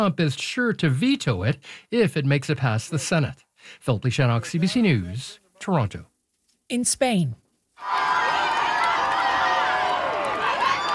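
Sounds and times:
speech: 0:00.0 - 0:06.1, 0:06.7 - 0:08.0
large crowd in Madrid cheering and shouting to welcome Pope Leo: 0:07.8 - 0:10.9.

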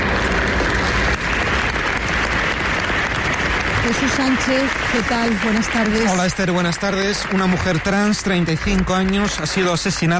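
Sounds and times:
crowd applause after a minute of silence: 0:00.0 - 0:10.1
speech: 0:03.9 - 0:10.1.

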